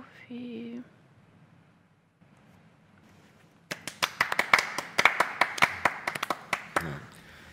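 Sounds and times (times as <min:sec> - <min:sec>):
small group clapping in a room: 0:03.7 - 0:07.2.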